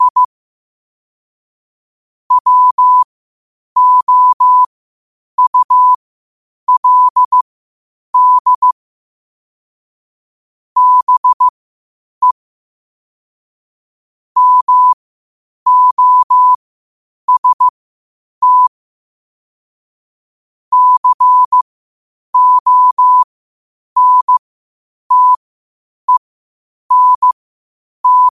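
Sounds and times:
morse code at 5 wpm: 0.0 - 0.3, 2.3 - 3.1, 3.8 - 4.7, 5.4 - 6.0, 6.7 - 7.4, 8.2 - 8.8, 10.8 - 11.5, 14.4 - 15.0, 15.7 - 16.6, 17.3 - 17.7, 18.4 - 18.7, 20.7 - 21.6, 22.4 - 23.2, 24.0 - 24.4, 25.1 - 25.4, 26.9 - 27.4, 28.0 - 28.3.

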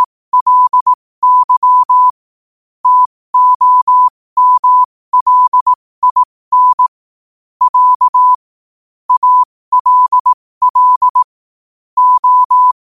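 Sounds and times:
morse code at 5 wpm: 0.0 - 2.2, 2.8 - 7.0, 7.6 - 8.4, 9.1 - 11.3, 12.0 - 12.9.

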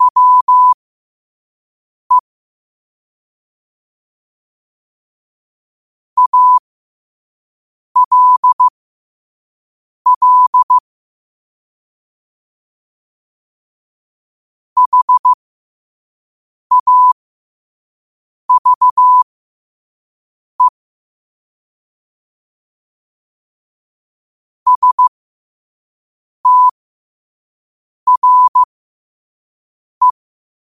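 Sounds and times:
morse code at 5 wpm: 0.0 - 0.8, 6.2 - 6.6, 8.0 - 8.7, 10.1 - 10.8, 14.8 - 15.4, 16.7 - 17.2, 18.5 - 19.2, 24.7 - 25.1, 26.5 - 26.7, 28.1 - 28.7.

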